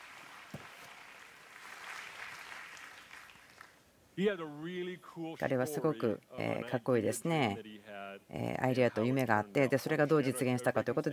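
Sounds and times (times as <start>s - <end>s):
applause: 0.0s - 3.8s
speech: 4.2s - 11.1s.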